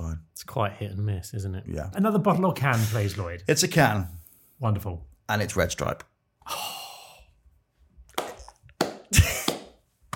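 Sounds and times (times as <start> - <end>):
speech: 0.4 - 6.7
slow hand clap: 8.1 - 10.1.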